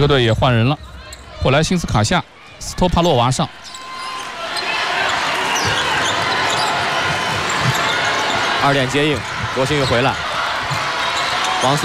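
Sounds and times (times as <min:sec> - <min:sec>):
speech: 0:00.0 - 0:03.8, 0:08.6 - 0:10.3, 0:11.6 - 0:11.8
steady crowd noise: 0:00.0 - 0:11.8
basketball dribbled during a women's game between China and the Czech Republic: 0:05.6 - 0:08.4.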